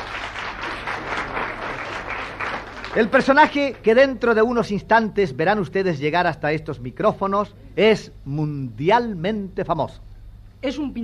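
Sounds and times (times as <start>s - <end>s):
welcoming applause from studio audience: 0.0s - 3.9s
speech: 2.9s - 11.0s.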